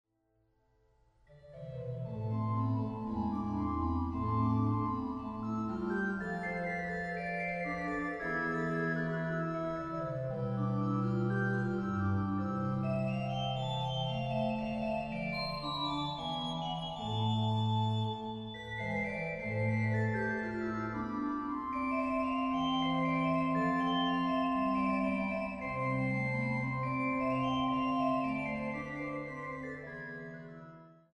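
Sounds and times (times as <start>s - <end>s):
organ: 1.4s - 30.9s.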